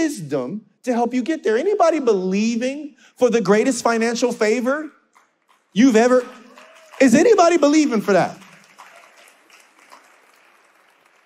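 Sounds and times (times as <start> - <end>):
speech: 0.0 - 5.0, 5.7 - 6.4, 7.0 - 8.4
audience clapping: 5.1 - 11.2.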